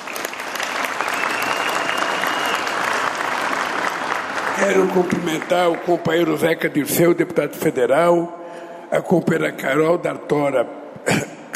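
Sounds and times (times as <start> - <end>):
crowd round of applause: 0.0 - 6.7
speech: 4.6 - 11.3.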